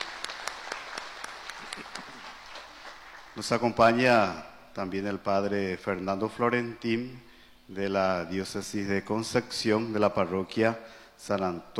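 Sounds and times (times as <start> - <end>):
audience applause welcoming a guest: 0.0 - 3.6
speech: 3.4 - 11.7.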